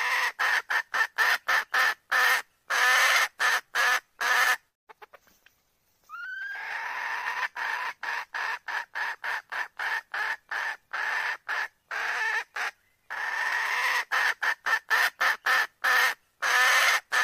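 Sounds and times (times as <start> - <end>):
red junglefowl hen cackling: 0.0 - 5.3, 6.1 - 17.2.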